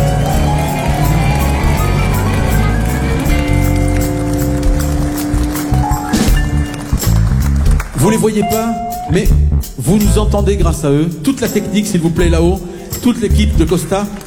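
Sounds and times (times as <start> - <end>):
audience applauding loudly: 0.0 - 8.4, 13.6 - 14.2
speech: 8.1 - 14.2.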